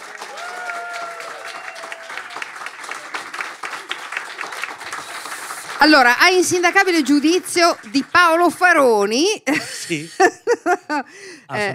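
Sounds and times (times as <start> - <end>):
audience applause: 0.0 - 8.8
speech: 5.8 - 11.7
laughter: 9.5 - 11.2.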